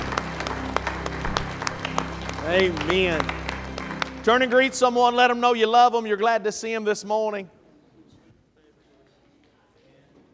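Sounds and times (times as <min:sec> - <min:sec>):
audience clapping hands in praise: 0:00.0 - 0:05.6
speech: 0:02.5 - 0:03.4, 0:04.2 - 0:07.6.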